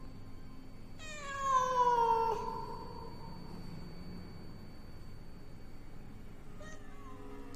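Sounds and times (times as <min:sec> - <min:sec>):
cat yowling: 0:01.0 - 0:03.2, 0:06.6 - 0:07.4.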